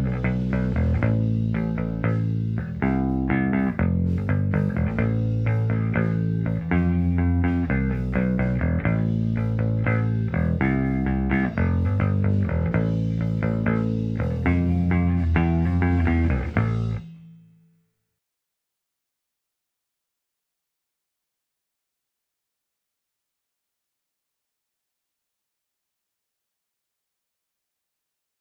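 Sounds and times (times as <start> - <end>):
M201 bass: 0.0 - 17.6.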